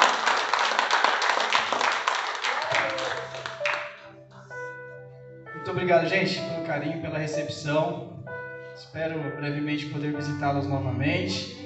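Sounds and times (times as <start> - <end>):
audience applauding: 0.0 - 4.1
sustained keyboard or organ chords: 2.6 - 11.6
speech: 5.6 - 8.2, 8.8 - 11.6.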